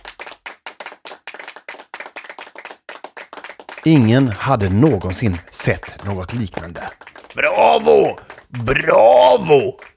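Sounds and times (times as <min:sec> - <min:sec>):
onlookers applauding slowly: 0:00.0 - 0:09.9
speech: 0:03.8 - 0:09.9.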